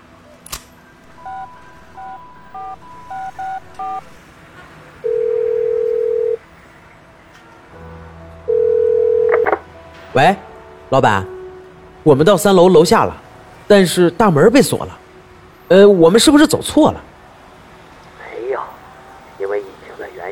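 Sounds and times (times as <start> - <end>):
telephone call ringing tone: 1.0 - 4.2, 5.0 - 6.4, 8.5 - 9.6
speech: 10.2 - 11.4, 12.0 - 15.0, 15.7 - 17.1.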